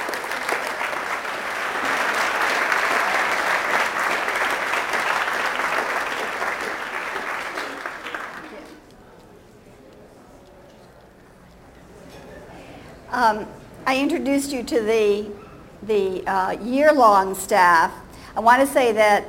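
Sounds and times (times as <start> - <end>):
crowd applause: 0.0 - 8.9
speech: 13.3 - 19.2.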